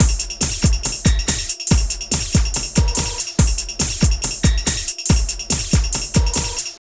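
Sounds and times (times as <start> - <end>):
drum loops: 0.0 - 6.7.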